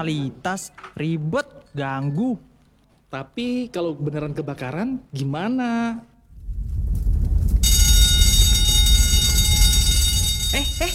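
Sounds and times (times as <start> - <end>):
speech: 0.0 - 2.5, 3.1 - 6.1, 10.5 - 10.9
fire alarm during evacuation drill: 7.6 - 10.9.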